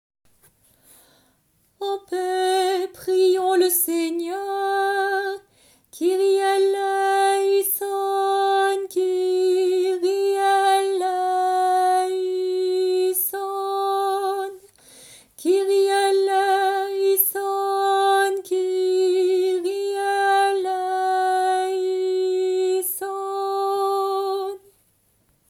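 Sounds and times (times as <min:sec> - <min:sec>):
intercession prayer: 0:01.8 - 0:24.8.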